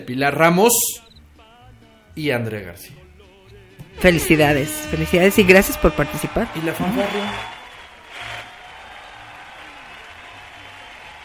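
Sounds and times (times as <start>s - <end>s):
speech: 0.0s - 1.1s, 2.2s - 3.0s, 4.0s - 7.6s
applause: 6.4s - 11.2s.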